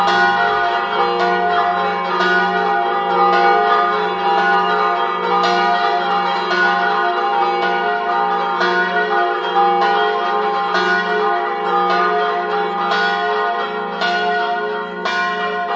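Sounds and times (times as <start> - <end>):
bells in Dolegna: 0.0 - 15.7.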